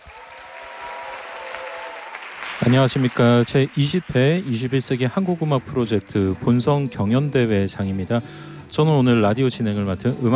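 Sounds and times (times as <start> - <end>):
audience applause for first contestant at Korean music competition: 0.0 - 6.6
speech: 2.6 - 10.3.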